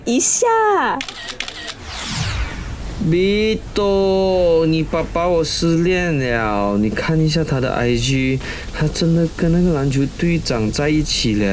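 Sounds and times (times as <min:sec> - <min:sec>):
speech: 0:00.1 - 0:02.3, 0:03.0 - 0:11.5
phone camera shutter clicking during a selfie: 0:01.0 - 0:01.8.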